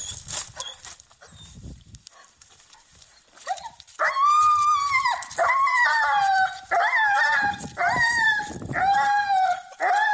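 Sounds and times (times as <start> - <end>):
scuffling: 0.0 - 10.1
dog screaming excitedly on a walk: 4.0 - 10.1.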